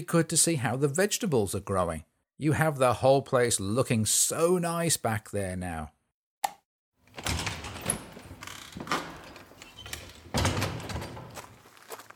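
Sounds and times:
speech: 0.0 - 6.0
homemade garden gate being opened: 7.1 - 11.7.

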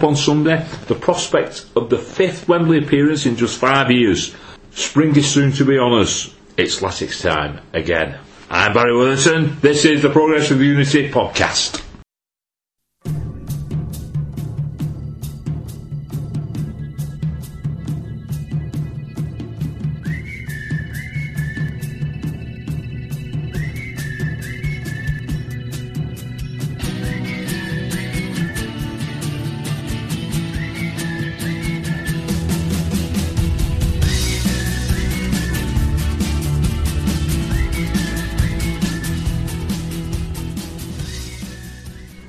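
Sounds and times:
speech: 0.0 - 11.8
football team walk-out tune: 13.0 - 42.2.

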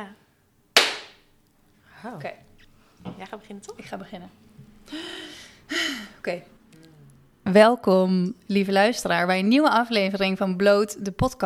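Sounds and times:
single sharp loud hand clap: 0.8 - 1.2
speech: 2.0 - 6.6, 7.5 - 11.4.

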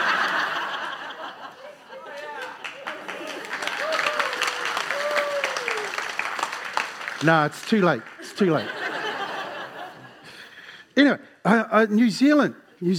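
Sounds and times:
laughter: 0.0 - 5.4, 8.2 - 10.7
audience applause: 2.0 - 9.9
speech: 7.2 - 8.8, 11.0 - 12.9.

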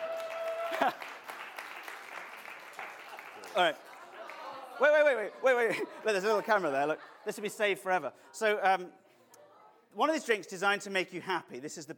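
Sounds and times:
audience applause: 0.0 - 5.2
laughter: 0.6 - 1.2, 3.0 - 8.7
speech: 0.8 - 1.2, 3.6 - 3.9, 4.8 - 9.0, 9.9 - 11.9.

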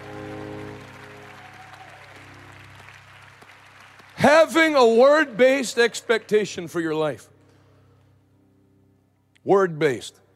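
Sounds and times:
audience hand clapping: 0.0 - 6.8
sustained low musical tones: 0.0 - 9.8
speech: 4.2 - 7.3, 9.4 - 10.2.

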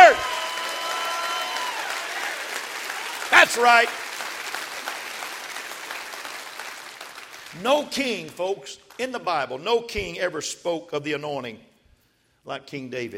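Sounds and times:
audience clapping hands: 0.0 - 9.2
spoken exclamation: 3.3 - 3.9
speech: 3.4 - 4.0, 7.6 - 11.7, 12.4 - 13.1.

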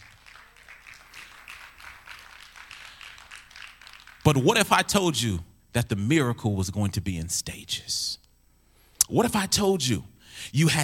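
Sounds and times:
audience clapping hands: 0.0 - 4.5
speech: 4.3 - 8.2, 9.1 - 10.8.

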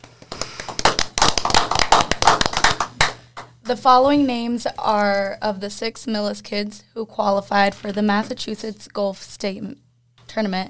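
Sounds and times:
audience applause: 0.4 - 3.2
speech: 3.7 - 10.6.

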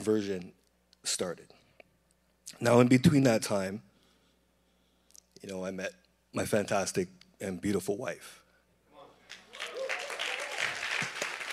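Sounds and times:
speech: 0.0 - 1.6, 2.5 - 3.9, 5.4 - 8.4
audience clapping: 9.2 - 11.5.

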